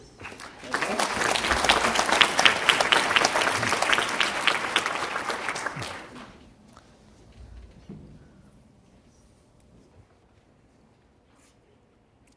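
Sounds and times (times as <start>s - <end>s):
audience applause: 0.0s - 6.5s.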